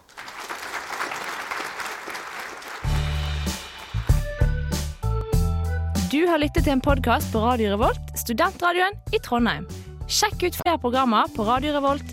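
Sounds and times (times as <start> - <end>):
audience clapping: 0.0 - 4.9
bass-heavy music track: 2.9 - 12.1
speech: 6.1 - 12.1.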